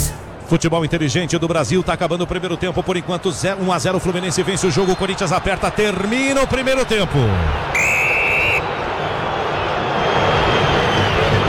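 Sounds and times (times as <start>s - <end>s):
speech: 0.5s - 8.0s
stadium crowd booing: 5.4s - 11.4s.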